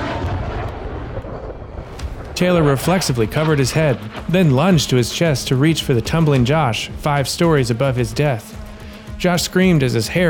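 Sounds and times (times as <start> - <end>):
sonic boom: 0.0 - 6.8
speech: 2.4 - 8.6, 9.2 - 10.2.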